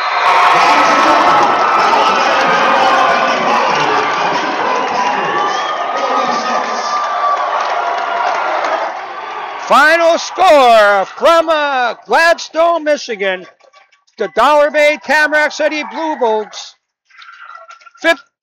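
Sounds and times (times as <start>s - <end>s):
crowd cheering after basketball game: 0.0s - 13.5s, 14.2s - 16.8s
speech: 9.7s - 13.6s, 14.2s - 16.6s, 18.0s - 18.3s.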